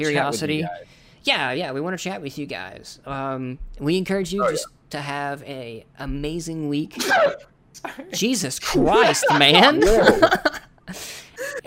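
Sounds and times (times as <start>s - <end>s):
speech: 0.0s - 11.6s
sneeze: 7.0s - 7.5s
laughter: 8.9s - 10.6s.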